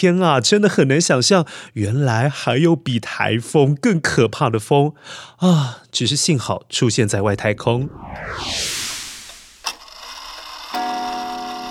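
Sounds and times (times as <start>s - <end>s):
speech: 0.0s - 8.9s
clock striking: 10.7s - 11.7s.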